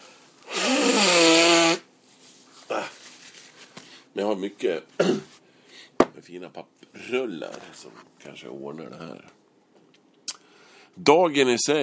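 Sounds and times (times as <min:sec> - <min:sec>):
nose blowing: 0:00.0 - 0:01.9
speech: 0:04.2 - 0:05.3, 0:06.2 - 0:09.4, 0:11.0 - 0:11.8.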